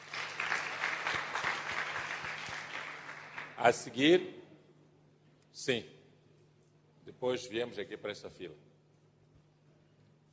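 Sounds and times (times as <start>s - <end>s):
crowd applause: 0.0s - 3.6s
speech: 3.6s - 4.4s, 5.6s - 6.0s, 7.2s - 8.7s.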